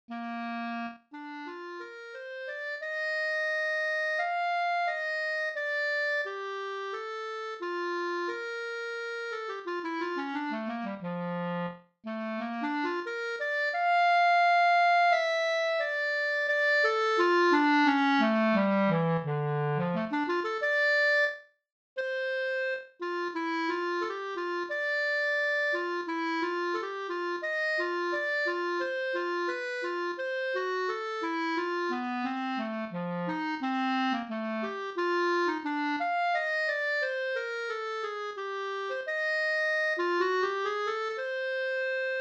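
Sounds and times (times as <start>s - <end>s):
clarinet: 0.1s - 42.2s.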